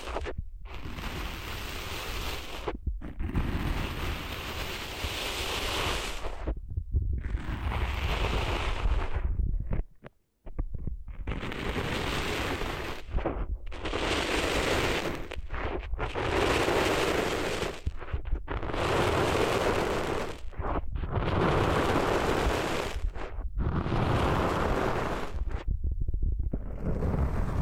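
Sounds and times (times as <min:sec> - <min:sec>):
rough crackling scrapes of sand cleaned out of ears: 0:00.0 - 0:06.6, 0:07.2 - 0:10.1, 0:11.1 - 0:25.7, 0:26.5 - 0:27.6
deep rumble: 0:06.3 - 0:11.6, 0:13.0 - 0:16.9, 0:17.5 - 0:27.6.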